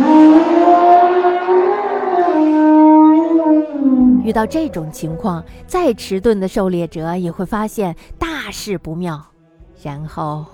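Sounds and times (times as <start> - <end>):
elephant trumpeting loudly: 0.0 - 5.6
speech: 4.3 - 10.5.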